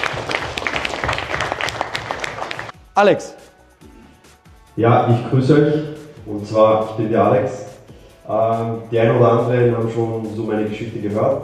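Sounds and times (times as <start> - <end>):
audience applause after a presentation: 0.0 - 2.8
speech: 3.0 - 3.4, 4.8 - 7.7, 8.3 - 11.4.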